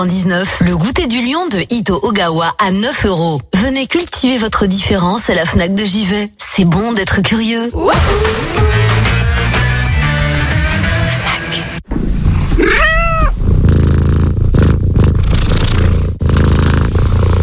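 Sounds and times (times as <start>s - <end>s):
speech: 0.0s - 8.9s, 11.5s - 11.7s
music: 7.8s - 11.8s
cat purring: 12.2s - 17.4s
cat meowing: 12.6s - 13.4s.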